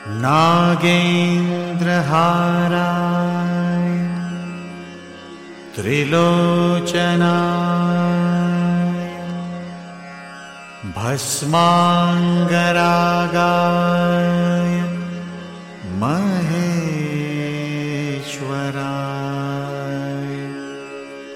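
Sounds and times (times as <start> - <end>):
person chanting a Hindu mantra: 0.0 - 4.6, 5.8 - 9.7, 10.8 - 21.3.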